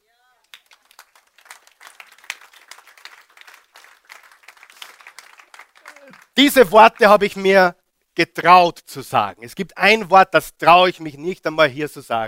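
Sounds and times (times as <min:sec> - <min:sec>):
audience applause: 0:00.4 - 0:07.3
speech: 0:06.1 - 0:12.2.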